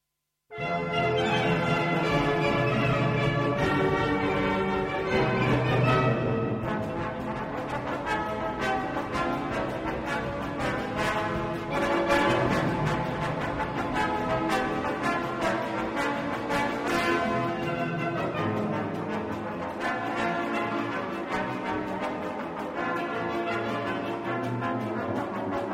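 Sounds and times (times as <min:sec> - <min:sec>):
trombones playing: 0:00.5 - 0:25.7.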